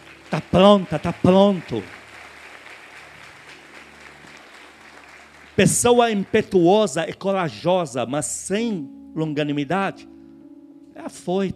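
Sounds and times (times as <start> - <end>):
audience applause: 0.0 - 6.7
speech: 0.3 - 2.0, 5.6 - 10.1, 11.0 - 11.5.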